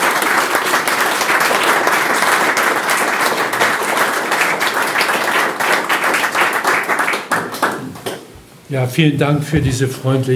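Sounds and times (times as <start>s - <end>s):
audience applause: 0.0s - 8.3s
speech: 8.7s - 10.3s.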